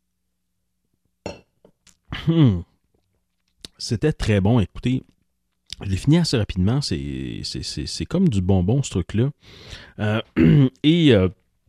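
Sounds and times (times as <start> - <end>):
glass clinking: 1.3 - 1.6
speech: 2.3 - 2.7, 3.8 - 5.1, 5.8 - 11.4.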